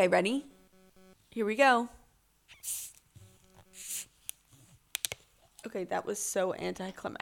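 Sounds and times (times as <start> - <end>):
speech: 0.0 - 0.5, 1.3 - 2.0, 2.6 - 2.9, 5.6 - 7.1
sipping water: 2.5 - 4.1.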